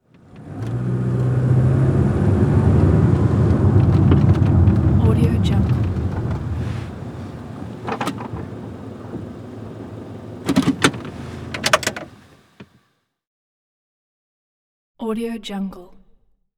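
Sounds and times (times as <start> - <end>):
sedan car parking maneuver: 0.0 - 12.8.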